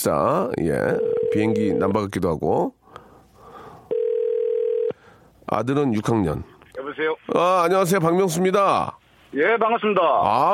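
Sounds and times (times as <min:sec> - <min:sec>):
speech: 0:00.0 - 0:02.8, 0:05.5 - 0:10.5
telephone ringback tone on an outgoing call: 0:01.0 - 0:01.8, 0:03.9 - 0:04.9.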